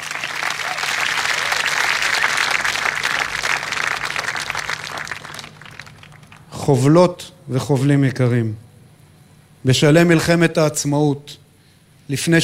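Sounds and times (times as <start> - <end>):
audience applause: 0.0 - 6.5
speech: 6.7 - 8.6, 9.6 - 11.4, 12.1 - 12.4.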